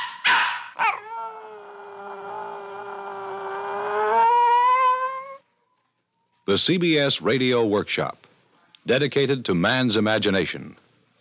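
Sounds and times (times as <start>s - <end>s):
dog barking and howling: 0.0s - 5.9s
speech: 6.5s - 8.2s, 8.8s - 10.8s.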